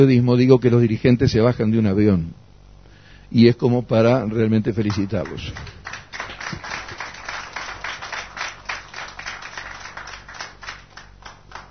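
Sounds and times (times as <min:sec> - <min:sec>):
speech: 0:00.0 - 0:02.4, 0:03.3 - 0:05.8
audience applause: 0:04.9 - 0:11.6.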